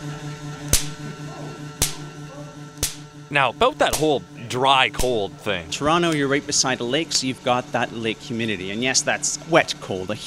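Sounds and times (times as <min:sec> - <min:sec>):
static electricity spark discharge crack: 0:00.7 - 0:01.0, 0:02.8 - 0:03.1
speech: 0:03.3 - 0:10.2.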